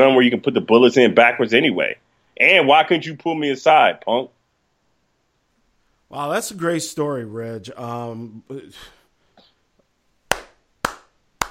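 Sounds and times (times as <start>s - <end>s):
speech: 0.0s - 4.4s, 6.1s - 9.0s
slow sarcastic golf clap hand claps: 10.3s - 11.4s.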